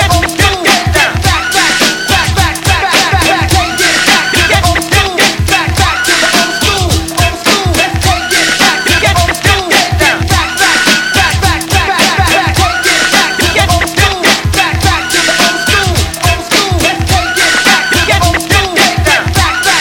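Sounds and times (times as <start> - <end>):
vocal chop intro: 0.0 - 19.8.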